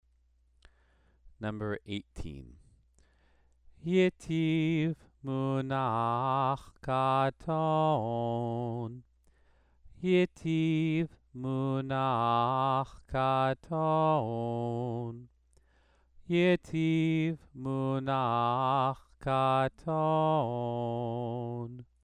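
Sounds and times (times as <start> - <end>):
Torah trope cantillation exercise: 3.9 - 9.0, 10.0 - 15.3, 16.3 - 21.8.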